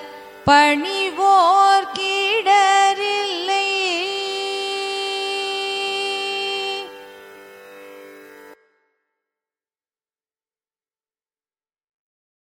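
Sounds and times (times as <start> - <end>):
carnatic classical music in raga dhanyasi: 0.0 - 9.1.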